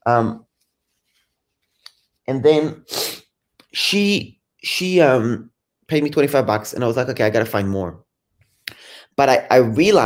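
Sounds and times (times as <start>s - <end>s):
speech: 0.0s - 0.4s, 2.3s - 3.0s, 3.7s - 8.0s, 9.2s - 10.0s
person blowing nose: 2.8s - 3.3s.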